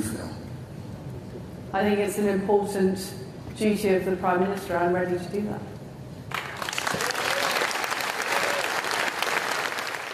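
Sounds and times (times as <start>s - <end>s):
speech: 1.7s - 5.7s
audience applause: 6.3s - 10.1s.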